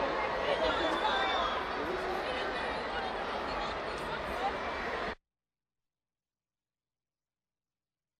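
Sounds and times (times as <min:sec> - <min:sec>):
crowd reacting with a child: 0:00.0 - 0:05.2.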